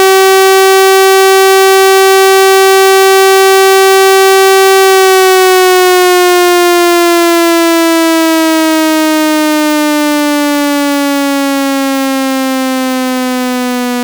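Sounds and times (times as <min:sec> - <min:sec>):
national test signal: 0:00.0 - 0:13.9.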